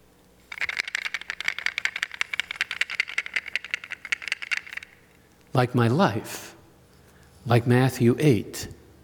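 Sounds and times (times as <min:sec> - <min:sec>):
loose pieces of a three-part puzzle rattling: 0:00.4 - 0:05.2
speech: 0:05.6 - 0:06.6, 0:07.4 - 0:08.8.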